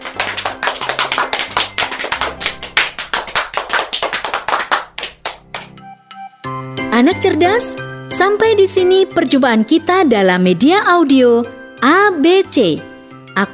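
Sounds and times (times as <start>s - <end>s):
children clapping hands: 0.0s - 5.8s
speech: 7.0s - 13.5s.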